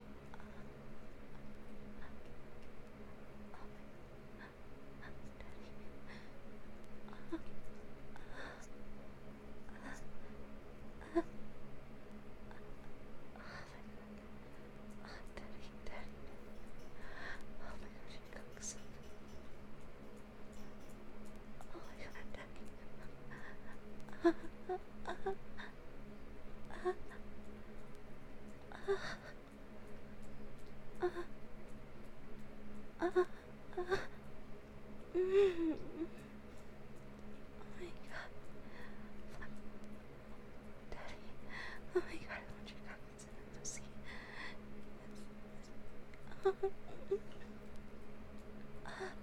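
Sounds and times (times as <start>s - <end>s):
soft moans: 0.1s - 8.9s, 9.6s - 11.5s, 12.4s - 31.4s, 32.9s - 34.3s, 35.0s - 36.6s, 37.2s - 47.7s, 48.3s - 49.2s.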